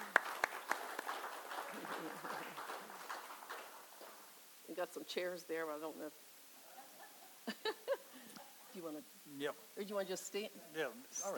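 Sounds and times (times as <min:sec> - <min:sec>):
audience applause: 0:00.0 - 0:04.3
faint murmur: 0:00.9 - 0:11.3
speech: 0:04.8 - 0:06.3, 0:08.8 - 0:11.3
laughter: 0:06.6 - 0:08.4.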